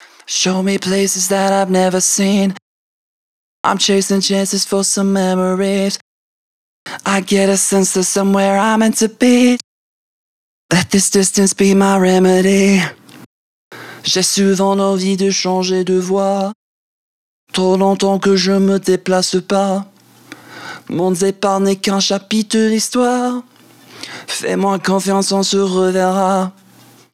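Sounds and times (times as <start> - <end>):
a cappella singing: 0.3 - 2.6, 3.7 - 6.0, 6.9 - 9.6, 10.7 - 13.0, 14.0 - 16.6, 17.5 - 20.0, 20.9 - 23.5, 24.3 - 26.7.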